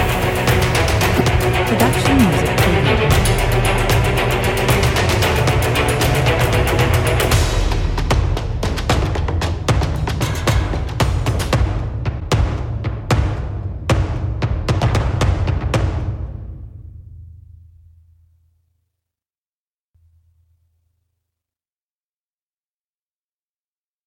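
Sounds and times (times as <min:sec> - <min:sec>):
percussion mix at 114 bpm: 0:00.0 - 0:16.1.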